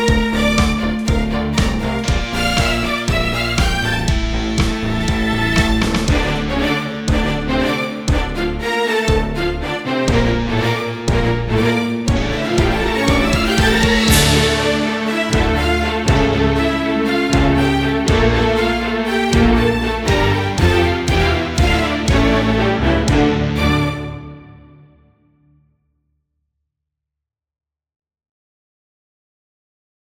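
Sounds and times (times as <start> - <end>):
pop strings: 0.0 - 24.6.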